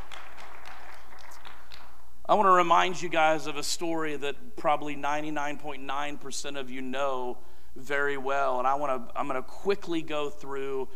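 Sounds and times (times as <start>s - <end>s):
audience clapping: 0.0s - 2.0s
speech: 2.3s - 10.9s.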